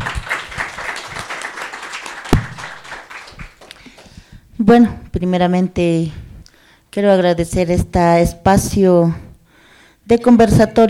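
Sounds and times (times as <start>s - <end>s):
applause: 0.0s - 4.2s
speech: 4.7s - 6.2s, 6.9s - 9.2s, 10.1s - 10.8s.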